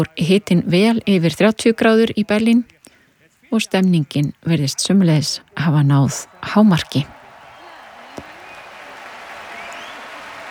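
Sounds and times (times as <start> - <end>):
speech: 0.0 - 2.8, 3.5 - 7.2
concert crowd cheering and applauding at an open-air stage in Berlin: 6.2 - 10.5.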